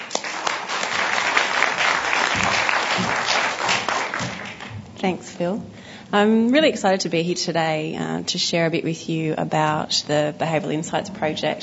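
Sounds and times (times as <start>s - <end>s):
audience applause welcoming a speaker: 0.0s - 4.8s
speech: 5.0s - 11.6s.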